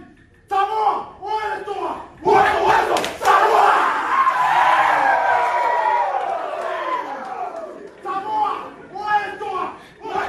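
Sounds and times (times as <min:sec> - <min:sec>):
NRL rookies shouting and cheering: 0:00.5 - 0:10.2
NRL rookies chanting in an Indigenous war dance: 0:02.2 - 0:07.7, 0:10.0 - 0:10.2.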